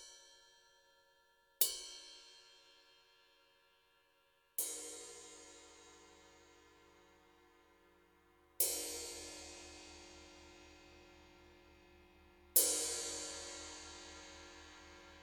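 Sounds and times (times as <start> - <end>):
20 inch ride cymbal played with plastic rods: 4.6 - 15.2.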